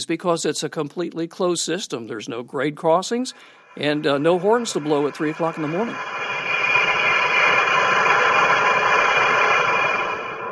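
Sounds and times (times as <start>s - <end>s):
speech: 0.0s - 6.4s
Japanese high-speed train passing: 3.2s - 10.5s.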